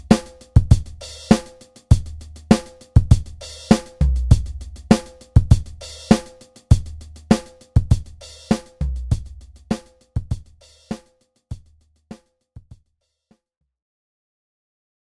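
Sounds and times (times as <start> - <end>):
dub drum kit: 0.0 - 11.7.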